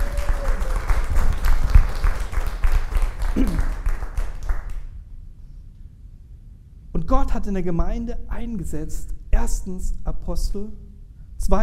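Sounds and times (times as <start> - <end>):
audience applause: 0.0 - 4.9
speech: 3.4 - 3.7, 7.3 - 10.9.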